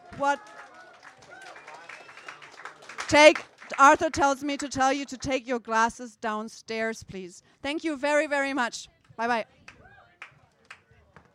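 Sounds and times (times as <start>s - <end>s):
audience applause: 0.0s - 4.8s
speech: 0.2s - 0.6s, 3.1s - 9.6s.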